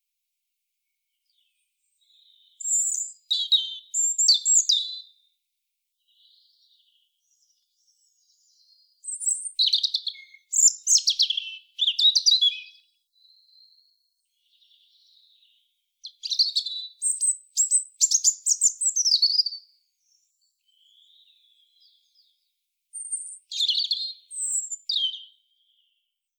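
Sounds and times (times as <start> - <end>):
European robin singing whistles: 2.1 - 5.1, 7.2 - 15.4, 16.0 - 22.3, 22.9 - 25.9.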